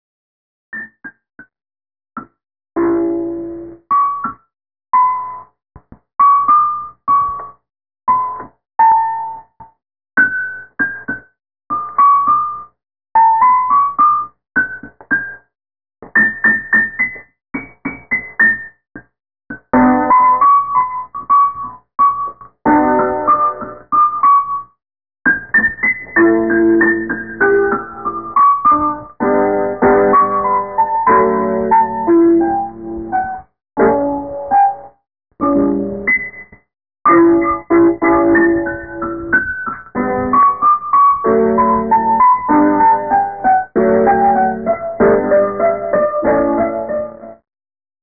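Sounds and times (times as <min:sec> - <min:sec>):
piano: 0:02.2 - 0:47.5.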